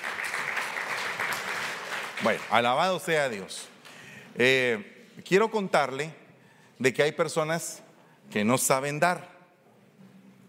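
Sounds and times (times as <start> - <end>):
audience applause: 0.0 - 2.7
speech: 2.2 - 3.7, 4.4 - 6.2, 6.8 - 9.3.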